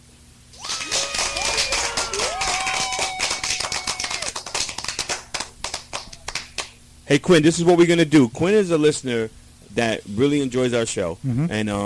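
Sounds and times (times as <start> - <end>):
whoops and cheering voices: 0.6 - 4.6
rapid hand clapping: 0.6 - 6.8
speech: 7.1 - 11.8.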